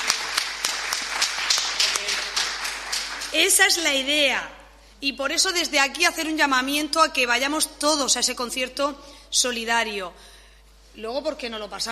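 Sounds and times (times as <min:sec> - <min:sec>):
audience applause: 0:00.0 - 0:03.4
speech: 0:03.3 - 0:10.3, 0:11.0 - 0:11.8.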